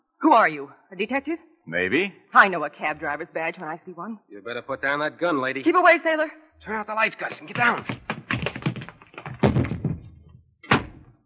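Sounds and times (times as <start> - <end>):
speech: 0.2 - 8.0
person tripping over their own feet and falling in a radio drama: 7.2 - 11.0.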